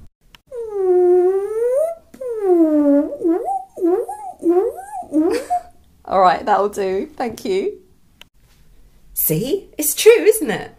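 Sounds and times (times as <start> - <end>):
person imitating whale song: 0.5 - 5.8
speech: 6.1 - 7.8, 9.2 - 10.7.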